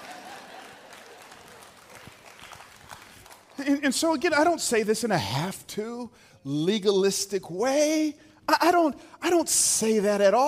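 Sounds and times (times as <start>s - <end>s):
two people clapping: 0.0s - 4.0s
speech: 3.6s - 10.4s.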